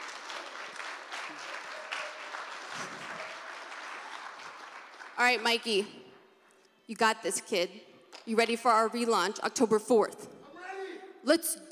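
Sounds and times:
applause: 0.0 - 5.6
speech: 5.2 - 6.0, 6.9 - 10.2, 11.2 - 11.6.

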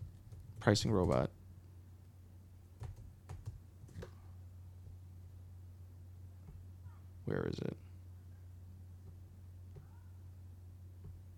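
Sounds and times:
quiet keystrokes on a computer keyboard typing a search: 0.0 - 1.3
faint steady hum: 0.0 - 11.3
speech: 0.6 - 1.4, 7.3 - 7.8.

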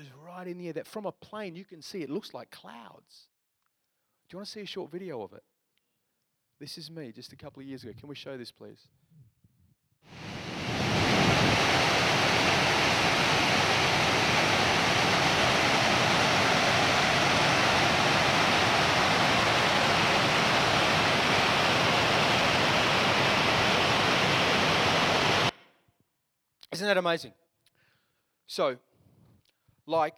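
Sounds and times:
speech: 0.4 - 3.3, 4.3 - 5.5, 6.6 - 9.0, 26.8 - 27.4, 28.5 - 28.9, 29.9 - 30.1
roar of Victoria Falls waterfall: 10.1 - 25.5.

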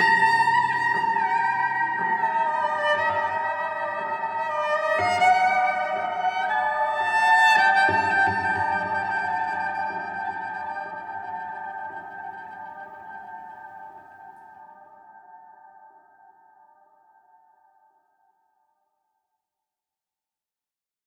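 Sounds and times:
cello postlude: 0.0 - 14.6.

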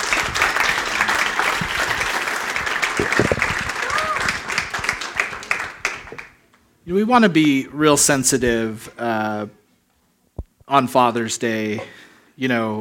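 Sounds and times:
audience round of applause: 0.0 - 6.3
speech: 6.9 - 9.6, 10.7 - 12.7.

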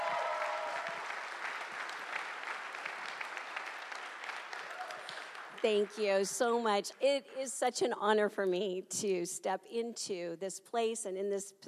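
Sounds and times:
audience applause: 0.0 - 6.0
speech: 5.6 - 11.6.

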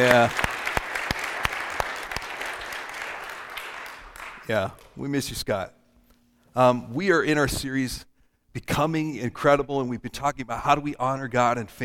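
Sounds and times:
speech: 0.0 - 0.4, 4.5 - 5.8, 6.6 - 11.8
audience clapping: 0.0 - 5.0.

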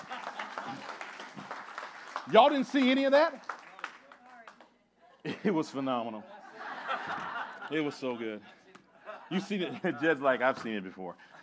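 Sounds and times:
laughter: 0.0 - 1.4, 5.0 - 11.4
audience clapping: 0.0 - 4.8
speech: 2.3 - 3.5, 5.4 - 6.3, 7.1 - 8.6, 9.3 - 11.3.

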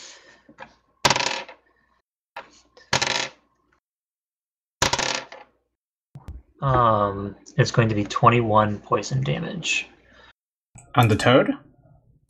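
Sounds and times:
dice clattering across a hard surface: 1.1 - 1.6, 3.0 - 3.4, 4.8 - 5.5
speech: 6.6 - 9.9, 10.9 - 11.7.

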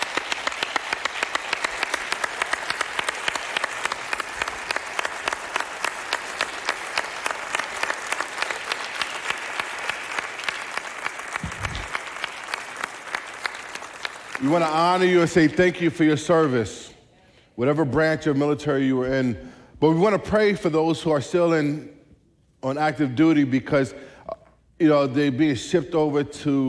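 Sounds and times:
large crowd applauding for veterans: 0.0 - 15.3
speech: 14.4 - 16.9, 17.6 - 22.0, 22.6 - 24.1, 24.8 - 26.6.

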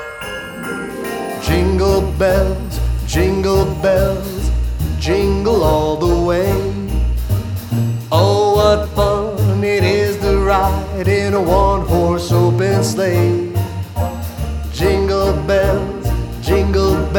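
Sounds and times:
person singing a song: 0.5 - 7.0, 8.1 - 13.7, 14.7 - 17.1.

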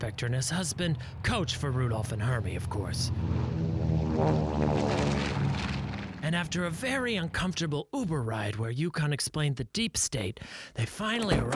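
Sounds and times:
speech: 0.0 - 5.7, 6.3 - 11.5
airplane flying sound effect: 0.0 - 7.4.

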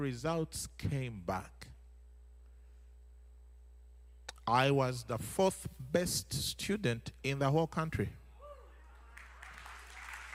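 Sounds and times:
speech: 0.0 - 1.7, 4.5 - 8.2
audience applause: 9.0 - 10.3.

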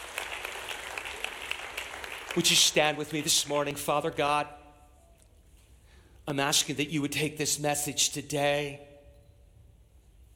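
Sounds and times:
audience clapping: 0.0 - 4.1
speech: 2.3 - 4.6, 6.3 - 8.9.

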